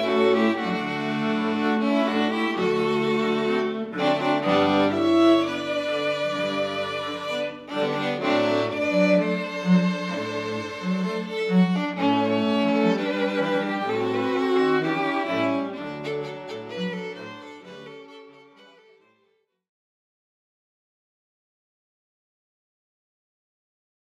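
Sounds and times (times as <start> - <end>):
string quartet playing: 0.0 - 19.0.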